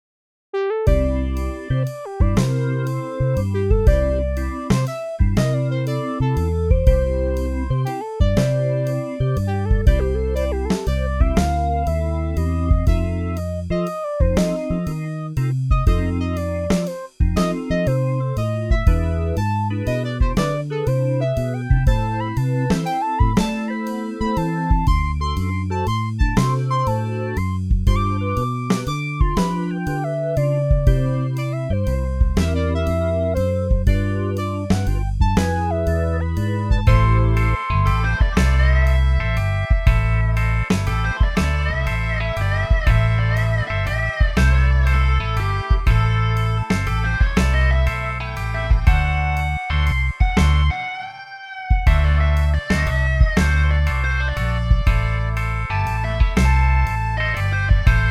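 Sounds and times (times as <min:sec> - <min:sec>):
MIDI blues music: 0:00.9 - 0:58.0.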